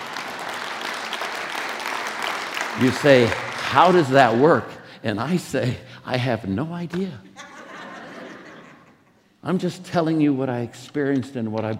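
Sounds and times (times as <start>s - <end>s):
audience applause: 0.0s - 4.5s
speech: 2.8s - 7.3s, 9.4s - 11.7s
laughter: 7.4s - 9.3s.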